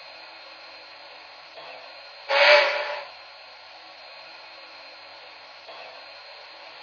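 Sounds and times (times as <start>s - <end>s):
cab forward train: 2.3s - 3.1s.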